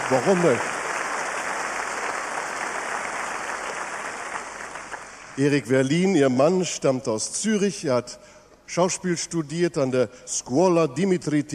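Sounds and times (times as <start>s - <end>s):
audience applause: 0.0s - 5.4s
speech: 0.1s - 0.8s, 5.4s - 11.5s.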